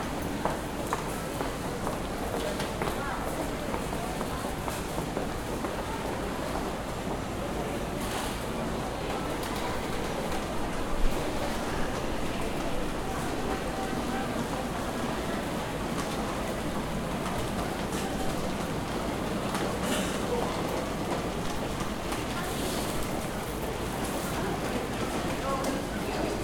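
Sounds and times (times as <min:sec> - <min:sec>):
train at Shinagawa Station platform in Japan: 0:00.0 - 0:26.4.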